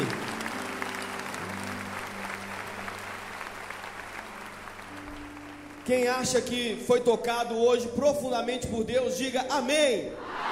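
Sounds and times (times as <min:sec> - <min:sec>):
audience applause: 0:00.0 - 0:05.9
speech: 0:05.9 - 0:10.4.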